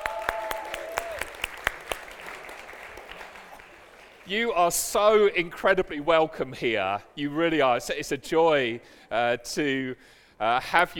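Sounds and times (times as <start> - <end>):
audience applause: 0.0 - 4.3
speech: 4.3 - 10.9.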